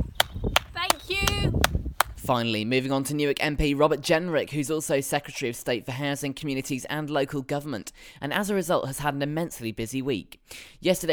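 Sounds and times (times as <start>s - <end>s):
people clapping for carers: 0.2s - 2.1s
speech: 2.3s - 11.1s.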